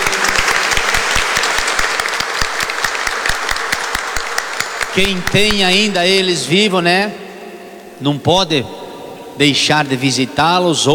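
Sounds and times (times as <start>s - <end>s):
audience applause: 0.0s - 6.0s
speech: 5.0s - 7.2s, 8.0s - 8.8s, 9.4s - 10.9s.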